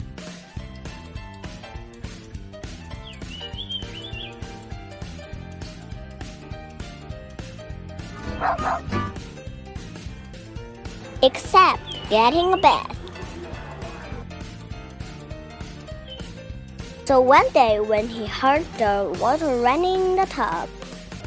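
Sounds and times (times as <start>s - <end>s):
upbeat music: 0.0s - 21.2s
dog barking: 8.2s - 9.1s
speech: 8.5s - 9.0s, 11.2s - 12.9s, 17.1s - 20.8s
laughter: 13.0s - 14.4s.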